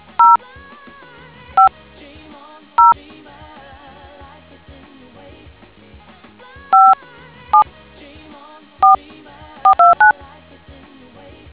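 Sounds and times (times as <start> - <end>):
DTMF tones: 0.1 - 0.4, 6.8 - 7.0, 9.7 - 10.1.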